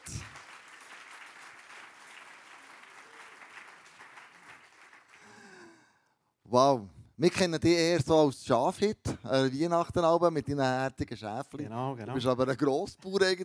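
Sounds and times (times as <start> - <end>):
audience applause: 0.0 - 5.6
speech: 6.5 - 13.4.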